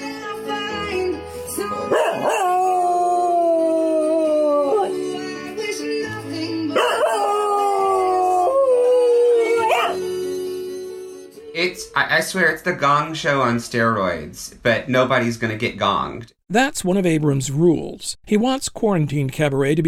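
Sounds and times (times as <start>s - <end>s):
pop song by a female singer: 0.0s - 13.3s
bulldog howling along to a song: 1.8s - 5.0s, 6.8s - 10.2s
speech: 12.1s - 19.8s.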